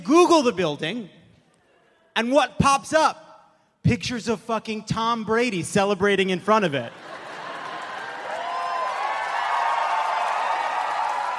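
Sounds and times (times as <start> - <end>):
speech: 0.1 - 1.2, 2.2 - 3.2, 3.8 - 7.1
audience cheering: 6.9 - 11.3
applause: 7.0 - 11.3
high whoops: 8.1 - 11.3.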